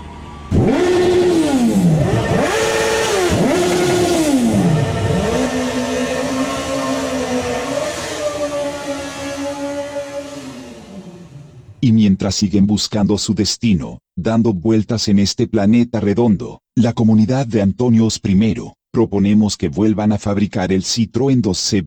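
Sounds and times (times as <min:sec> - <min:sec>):
black motorcycles' engines revving: 0:00.0 - 0:11.8
speech: 0:12.3 - 0:21.8.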